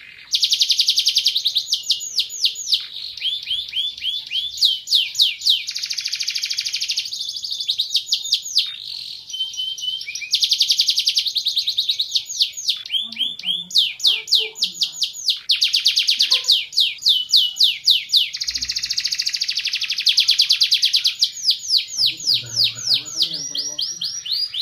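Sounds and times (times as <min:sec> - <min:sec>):
canary chirping: 0:00.0 - 0:24.6.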